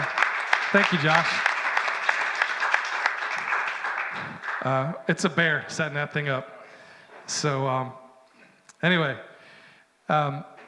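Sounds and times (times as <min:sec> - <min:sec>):
crowd clapping: 0:00.0 - 0:05.3
speech: 0:00.7 - 0:01.4, 0:04.6 - 0:06.5, 0:07.3 - 0:08.0, 0:08.8 - 0:09.3, 0:10.1 - 0:10.5.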